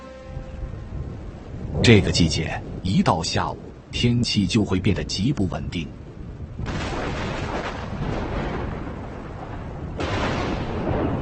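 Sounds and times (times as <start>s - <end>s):
thunder: 0.8s - 3.8s, 6.1s - 11.2s
speech: 1.8s - 6.0s.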